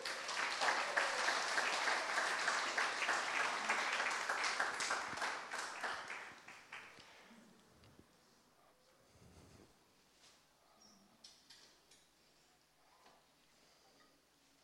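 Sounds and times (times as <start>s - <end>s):
audience applause for a pastor: 0.0s - 7.2s.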